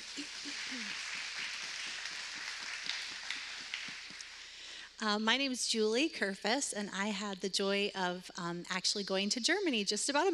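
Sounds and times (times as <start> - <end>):
audience clapping: 0.0 - 4.7
speech: 5.0 - 10.3.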